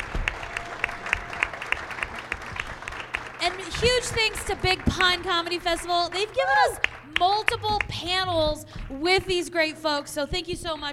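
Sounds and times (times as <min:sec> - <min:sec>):
audience applause: 0:00.0 - 0:07.9
speech: 0:03.4 - 0:10.9.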